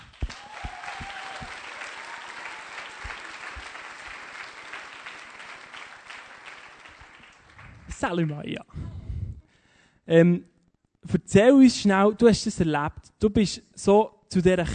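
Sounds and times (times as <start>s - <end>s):
audience applause: 0.0s - 8.1s
speech: 8.0s - 8.8s, 10.1s - 10.5s, 11.2s - 14.7s.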